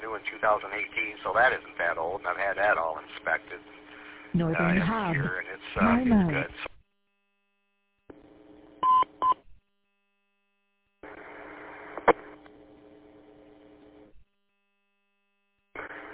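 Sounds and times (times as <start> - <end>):
buzzy stretch of hiss and tone: 0.0 - 6.8, 11.0 - 14.1, 15.8 - 16.1
speech: 0.2 - 6.7.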